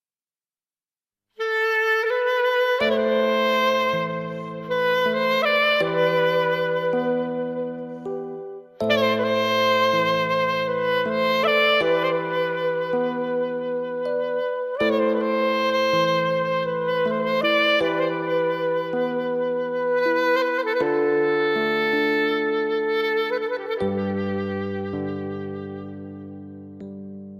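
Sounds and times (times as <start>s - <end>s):
clarinet: 1.4s - 27.3s.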